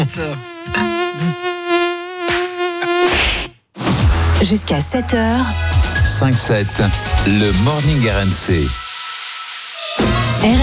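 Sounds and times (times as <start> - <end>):
speech: 0.0 - 1.5, 4.4 - 8.8, 10.4 - 10.6
mosquito whining: 0.0 - 3.2.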